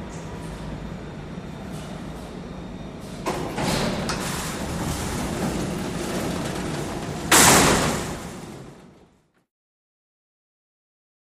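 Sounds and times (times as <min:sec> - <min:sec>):
freight elevator door: 0:01.5 - 0:09.4.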